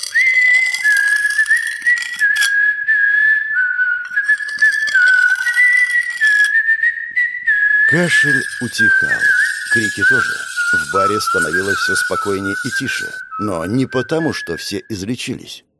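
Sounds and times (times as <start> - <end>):
sickle dragged along a brick wall throwing sparks: 0.0 - 2.6, 4.0 - 6.6, 7.9 - 13.2
young man whistling an eerie melody: 0.0 - 15.5
speech: 7.9 - 15.7.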